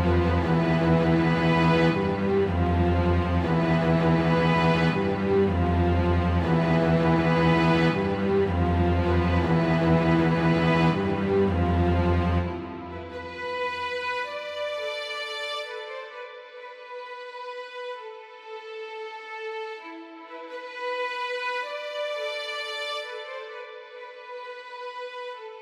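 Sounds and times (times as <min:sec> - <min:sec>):
string orchestra: 0:00.0 - 0:25.6.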